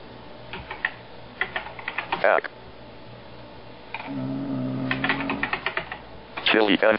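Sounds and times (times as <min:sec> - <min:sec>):
typing on a computer keyboard into a barcode menu: 0:00.5 - 0:02.2, 0:04.8 - 0:06.0
speech: 0:02.2 - 0:02.6, 0:04.1 - 0:04.3, 0:06.6 - 0:06.9.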